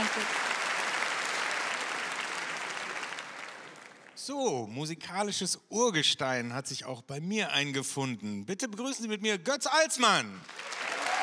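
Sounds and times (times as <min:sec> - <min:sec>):
audience applause: 0:00.0 - 0:04.2, 0:10.4 - 0:11.2
speech: 0:04.2 - 0:10.7.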